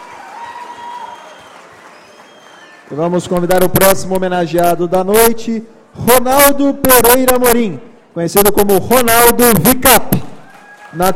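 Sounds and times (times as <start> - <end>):
audience clapping at an evening honours ceremony: 0.0 - 3.7, 10.4 - 11.1
thin whistle: 1.0 - 2.8
speech: 2.9 - 10.3, 10.9 - 11.1.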